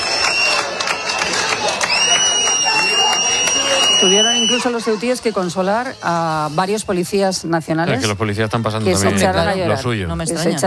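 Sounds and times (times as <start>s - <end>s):
applause: 0.0s - 5.0s
speech: 4.0s - 10.6s.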